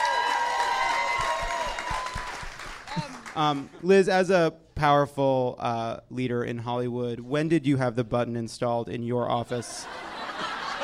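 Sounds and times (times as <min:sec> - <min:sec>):
raised voices and whoops: 0:00.0 - 0:03.2
crowd clapping: 0:00.0 - 0:03.8
speech: 0:03.0 - 0:10.0
laughter: 0:09.4 - 0:10.8.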